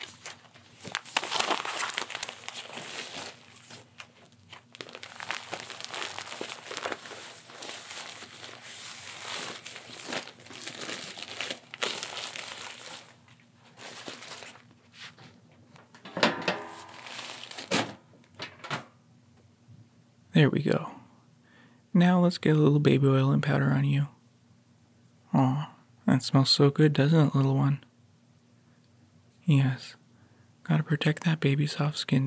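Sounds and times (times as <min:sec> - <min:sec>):
old diaper crumpled and tossed out: 0:00.0 - 0:15.9, 0:16.6 - 0:18.0
speech: 0:20.4 - 0:21.0, 0:22.0 - 0:24.2, 0:26.2 - 0:27.9, 0:29.5 - 0:30.0, 0:30.9 - 0:32.2.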